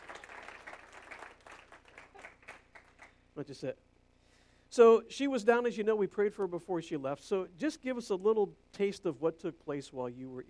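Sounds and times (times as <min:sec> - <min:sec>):
audience applause: 0:00.0 - 0:03.2
speech: 0:03.4 - 0:03.9, 0:04.7 - 0:10.4.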